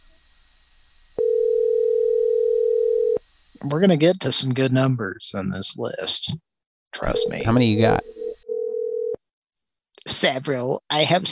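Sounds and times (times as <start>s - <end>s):
telephone voicemail tone: 1.2s - 3.2s, 7.0s - 9.2s
speech: 3.6s - 8.2s, 10.1s - 11.3s.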